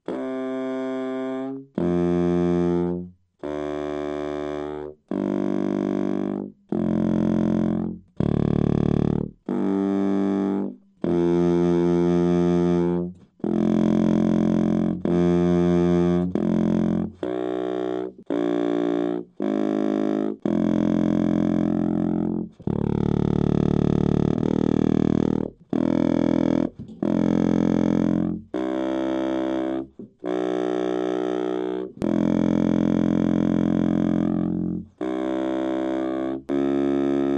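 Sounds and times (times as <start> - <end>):
contrabass saxophone: 0.0 - 37.3.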